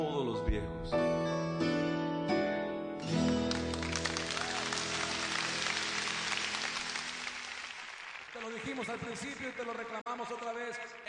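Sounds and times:
sustained musical chords: 0:00.4 - 0:07.4
clapping: 0:03.3 - 0:11.0
speech: 0:08.9 - 0:11.0.

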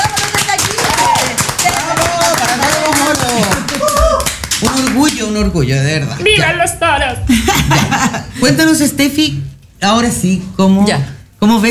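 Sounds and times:
applause: 0:00.0 - 0:05.3
speech: 0:05.2 - 0:11.7
laughter: 0:07.3 - 0:08.5.

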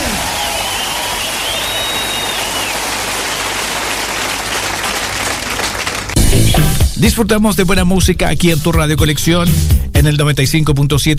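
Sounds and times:
audience applause: 0:00.0 - 0:06.6
speech: 0:07.0 - 0:11.1.

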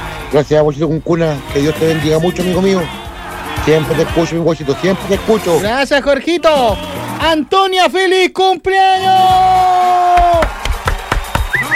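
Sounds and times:
speech: 0:00.3 - 0:03.0, 0:03.6 - 0:10.6
spontaneous audience applause: 0:10.2 - 0:11.7.

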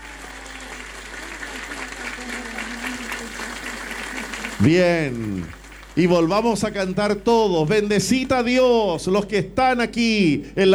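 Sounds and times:
laughter: 0:00.0 - 0:07.9
audience clapping: 0:00.0 - 0:08.9
speech: 0:04.6 - 0:10.7.

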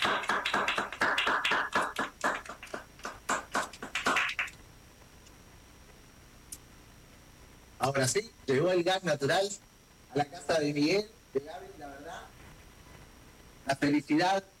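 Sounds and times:
applause: 0:00.0 - 0:04.6
speech: 0:08.0 - 0:12.4, 0:13.6 - 0:14.5.

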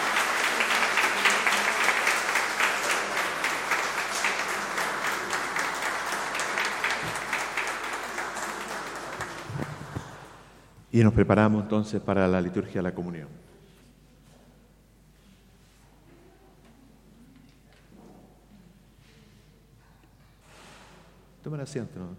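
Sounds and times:
audience applause: 0:00.0 - 0:10.6
speech: 0:11.0 - 0:13.5, 0:21.5 - 0:22.1.

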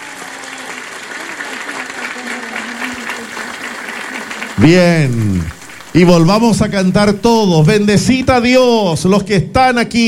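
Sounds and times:
faint murmur of voices: 0:00.0 - 0:05.6
audience applauding in a church: 0:00.0 - 0:08.4
speech: 0:04.6 - 0:10.0.

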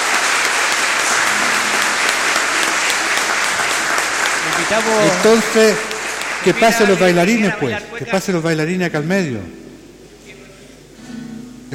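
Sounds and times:
audience applause: 0:00.0 - 0:07.8
speech: 0:04.7 - 0:09.6.

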